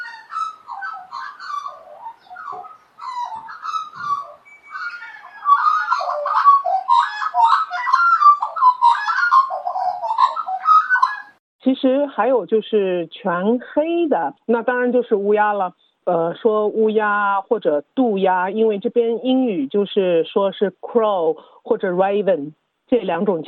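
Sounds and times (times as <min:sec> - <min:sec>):
Australian Magpie singing: 0:00.0 - 0:11.4
speech: 0:11.8 - 0:23.4.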